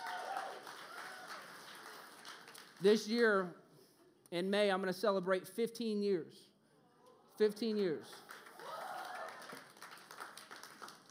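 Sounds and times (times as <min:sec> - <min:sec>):
audience clapping: 0:00.0 - 0:03.3, 0:08.0 - 0:11.0
speech: 0:02.8 - 0:03.6, 0:04.3 - 0:06.5, 0:07.4 - 0:08.4.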